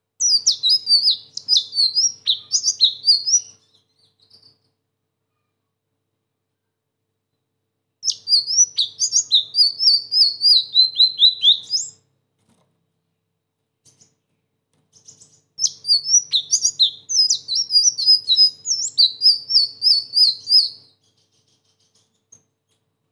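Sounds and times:
sunbird singing a high-pitched twittering song: 0.2s - 4.6s, 8.0s - 12.0s, 14.9s - 22.4s.

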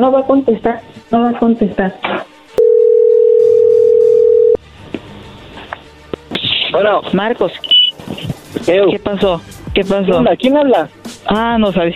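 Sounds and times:
speech: 0.0s - 2.3s, 6.7s - 11.9s
telephone dial tone while placing call: 2.6s - 4.6s.

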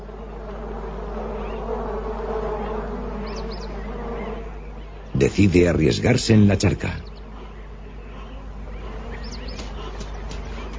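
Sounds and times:
bees buzzing in a water well: 0.0s - 10.7s
speech: 5.2s - 7.1s.

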